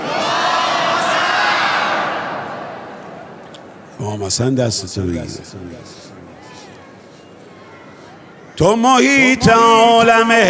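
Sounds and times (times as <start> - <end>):
crowd chanting: 0.0 - 3.4
speech: 4.2 - 6.2, 8.6 - 10.4.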